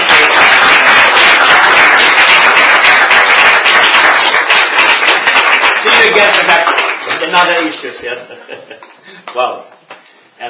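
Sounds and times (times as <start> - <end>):
audience applause: 0.0 - 7.7
speech: 9.4 - 9.7.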